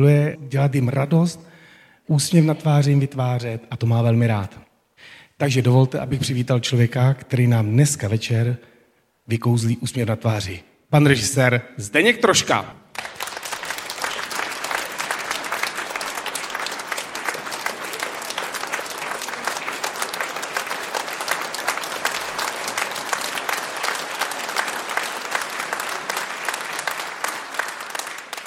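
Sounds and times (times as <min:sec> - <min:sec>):
speech: 0:00.0 - 0:08.7, 0:09.3 - 0:12.8
audience applause: 0:12.9 - 0:28.4.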